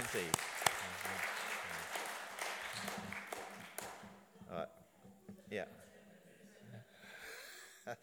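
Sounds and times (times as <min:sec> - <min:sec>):
audience round of applause: 0:00.0 - 0:04.0
speech: 0:00.1 - 0:01.3.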